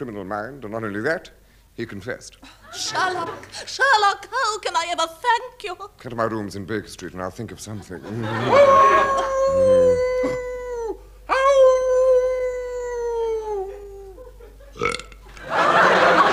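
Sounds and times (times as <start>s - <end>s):
speech: 0.0s - 10.5s
laughter: 2.5s - 3.7s, 7.6s - 10.6s, 13.4s - 16.3s
howling of the hound of the Baskervilles: 8.5s - 13.8s.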